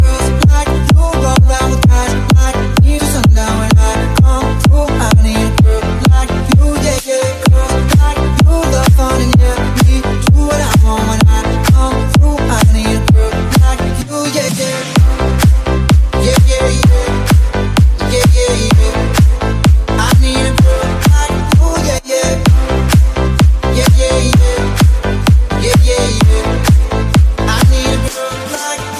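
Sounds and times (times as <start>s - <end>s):
English remix ringtone music: 0.0s - 28.9s.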